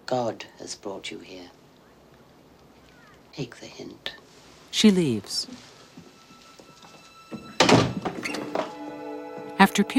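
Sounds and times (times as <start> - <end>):
speech: 0.1 - 1.6, 3.4 - 5.7, 9.6 - 9.9
small hatch in a heavy door slammed shut: 7.6 - 8.7.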